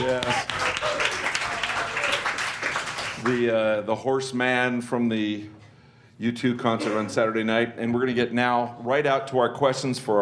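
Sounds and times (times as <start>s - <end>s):
speech: 0.0s - 0.6s, 3.2s - 5.6s, 6.2s - 10.2s
audience clapping at a brewery pub event: 0.0s - 3.6s.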